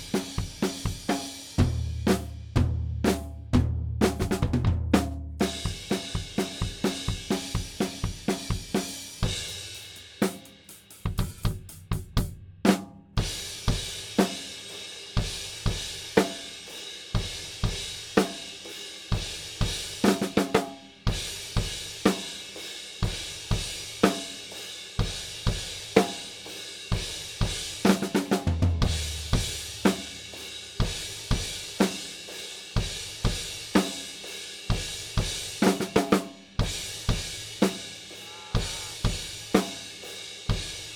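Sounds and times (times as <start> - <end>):
drums: 0.0 - 40.9.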